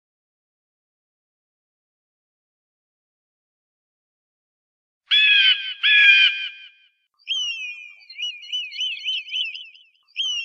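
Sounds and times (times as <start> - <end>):
eagle piping whistled calls: 5.1 - 6.7, 7.3 - 10.4.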